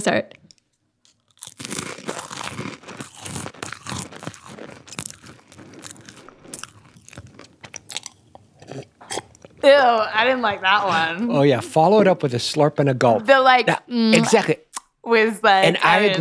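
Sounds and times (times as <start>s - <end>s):
speech: 0.0s - 0.4s, 9.6s - 16.1s
crunching and chewing crisp crackers: 0.5s - 9.6s.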